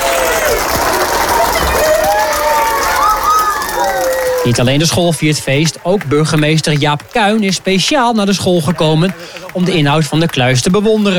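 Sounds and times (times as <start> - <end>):
children cheering: 0.0 - 6.6
children clapping: 0.0 - 11.1
speech: 4.4 - 11.1.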